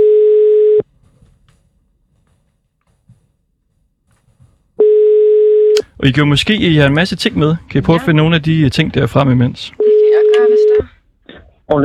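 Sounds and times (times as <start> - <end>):
telephone call ringing tone: 0.0 - 0.8, 4.8 - 5.8, 9.8 - 10.9
speech: 6.0 - 9.8.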